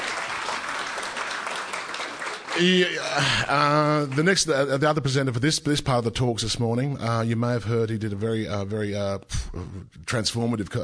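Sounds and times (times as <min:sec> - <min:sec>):
audience applause: 0:00.0 - 0:04.7
speech: 0:02.6 - 0:10.8.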